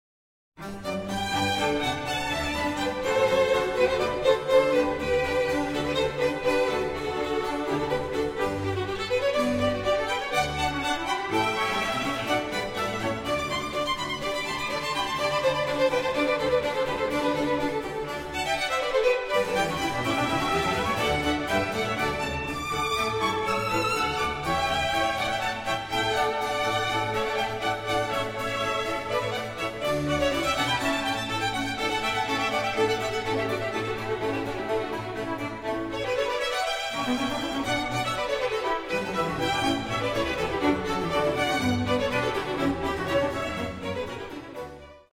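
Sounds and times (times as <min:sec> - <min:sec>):
concerto for strings and continuo in G major: 0:00.6 - 0:45.1.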